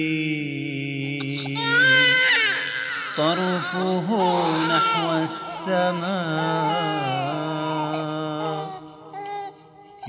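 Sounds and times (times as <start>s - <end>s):
speech: 0.0s - 0.5s, 3.2s - 8.6s
baby crying: 1.2s - 10.0s.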